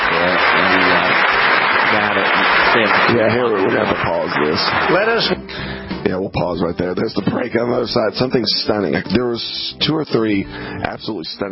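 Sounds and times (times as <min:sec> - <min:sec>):
dense applause from a standing audience: 0:00.0 - 0:05.4
speech: 0:02.8 - 0:11.5.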